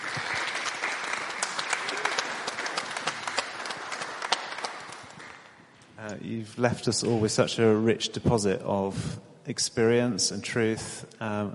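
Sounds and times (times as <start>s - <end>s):
crowd applauding: 0.0s - 5.6s
speech: 6.1s - 11.5s.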